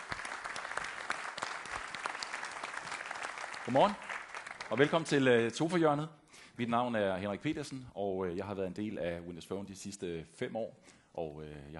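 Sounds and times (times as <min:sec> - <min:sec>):
audience applause at a Windows Phone presentation: 0:00.0 - 0:05.3
speech: 0:03.7 - 0:04.1, 0:04.7 - 0:11.7.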